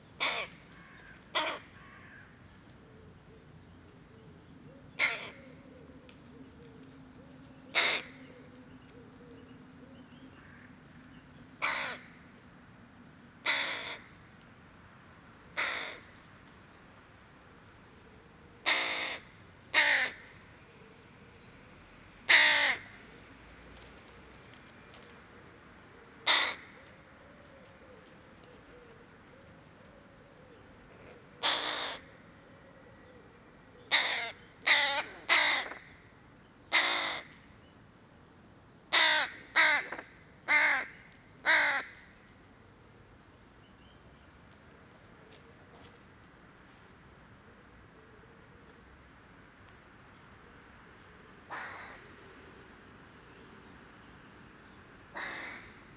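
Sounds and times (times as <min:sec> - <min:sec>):
hooded crow Corvus cornix cornix calling: 0:00.2 - 0:02.3, 0:05.0 - 0:05.5, 0:07.7 - 0:08.3, 0:11.6 - 0:12.2, 0:13.4 - 0:14.2, 0:15.6 - 0:16.1, 0:18.6 - 0:20.4, 0:22.3 - 0:23.0, 0:26.2 - 0:27.0, 0:31.4 - 0:32.2, 0:33.8 - 0:36.0, 0:36.7 - 0:37.4, 0:38.9 - 0:42.1, 0:51.5 - 0:52.2, 0:55.1 - 0:55.9.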